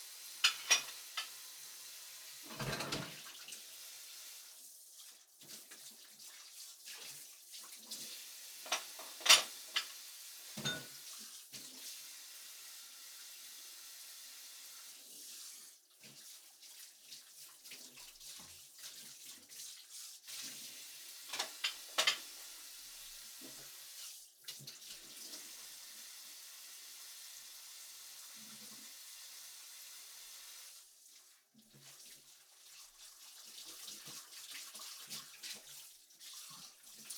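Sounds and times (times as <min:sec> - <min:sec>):
dishes being washed: 0:00.0 - 0:12.2, 0:14.8 - 0:25.8, 0:30.8 - 0:37.1.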